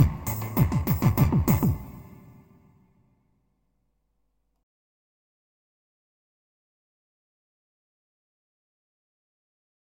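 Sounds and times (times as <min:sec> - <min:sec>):
Korg Pa 500 keyboard halay music: 0:00.0 - 0:02.8.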